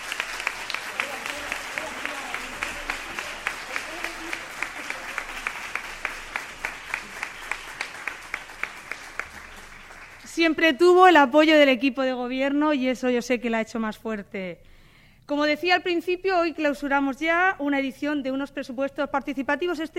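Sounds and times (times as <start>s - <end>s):
audience applause: 0.0s - 10.3s
speech: 10.4s - 14.7s, 15.3s - 19.9s.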